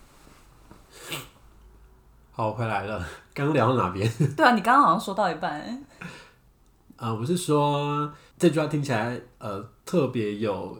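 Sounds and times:
person blowing nose: 0.9s - 1.4s
speech: 2.4s - 6.2s, 7.0s - 10.7s.

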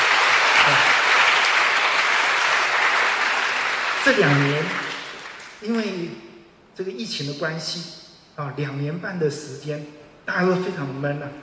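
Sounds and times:
audience applause: 0.0s - 5.7s
speech: 4.0s - 4.8s, 5.6s - 6.2s, 6.8s - 11.4s.

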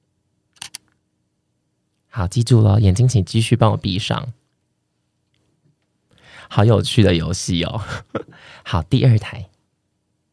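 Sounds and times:
camera shutter click: 0.6s - 0.9s
speech: 2.1s - 4.4s, 6.5s - 9.5s.

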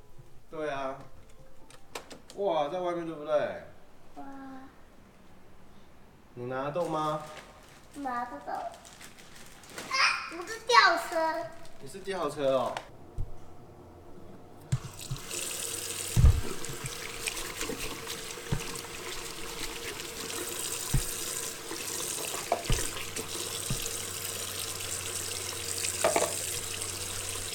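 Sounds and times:
speech: 0.5s - 1.1s, 2.4s - 4.7s, 6.4s - 9.0s, 9.7s - 12.9s
clicks and light knocks: 1.0s - 2.4s
water running from a tap while someone washes their hands: 14.7s - 27.5s.

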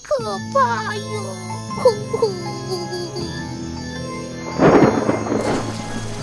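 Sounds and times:
speech: 0.3s - 2.4s
raindrops pattering: 4.2s - 6.2s
wind blowing: 4.3s - 6.2s.

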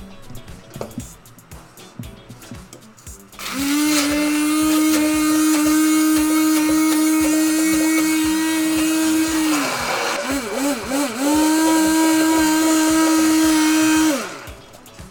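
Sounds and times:
blender crushing food: 3.4s - 14.6s.

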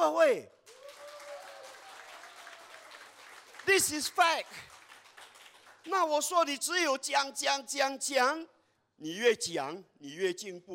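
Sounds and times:
speech: 0.2s - 0.6s, 3.7s - 4.8s, 5.8s - 10.7s
crowd applauding: 0.7s - 6.0s.

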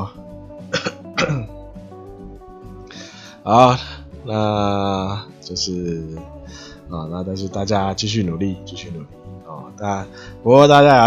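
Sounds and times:
person coughing: 0.7s - 1.5s
speech: 3.4s - 11.0s.

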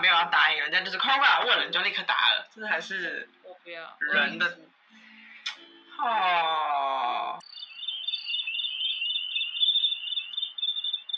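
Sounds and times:
speech: 0.0s - 4.8s, 6.0s - 7.5s
birds singing: 7.4s - 11.1s
insects chirping: 7.4s - 11.1s.

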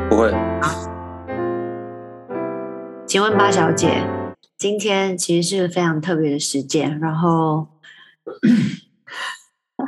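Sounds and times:
speech: 0.2s - 0.9s, 3.1s - 9.8s
man coughing: 8.3s - 8.8s.

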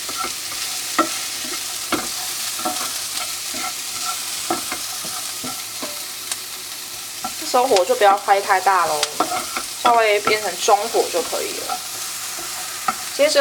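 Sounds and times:
spatula scraping a pan: 0.0s - 6.1s, 8.8s - 13.4s
onions stir-fried in a pan for shrimp and pork white-sauce pasta: 0.0s - 13.4s
speech: 7.6s - 11.9s, 13.2s - 13.4s.

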